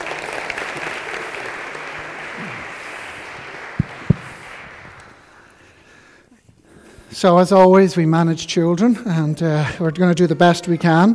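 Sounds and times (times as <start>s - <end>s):
audience applause: 0.0s - 5.7s
speech: 7.2s - 11.1s.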